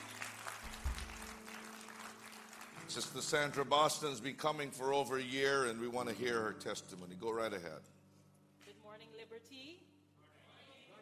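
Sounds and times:
audience applause: 0:00.0 - 0:03.8
speech: 0:02.9 - 0:08.0.

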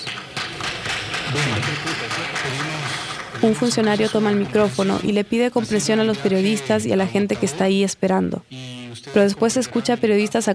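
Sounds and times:
crowd applauding: 0:00.0 - 0:05.2
speech: 0:01.3 - 0:10.5.

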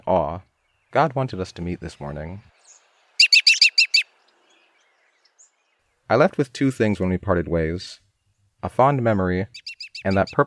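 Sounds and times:
speech: 0:00.1 - 0:02.6, 0:06.1 - 0:08.0, 0:08.6 - 0:10.4
American robin phrase of quick bright chirped notes: 0:01.9 - 0:06.0, 0:09.5 - 0:10.4.

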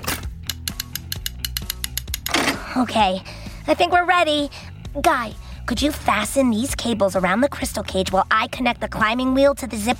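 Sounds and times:
ratcheting mechanism being adjusted: 0:00.4 - 0:02.5
speech: 0:02.8 - 0:09.9.

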